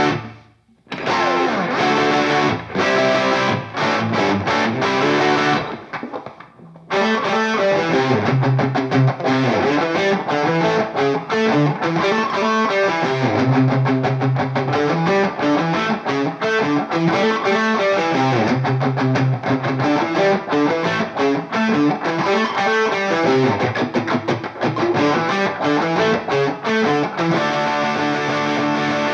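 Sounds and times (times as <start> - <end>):
rhythm guitar: 0.0 - 29.1.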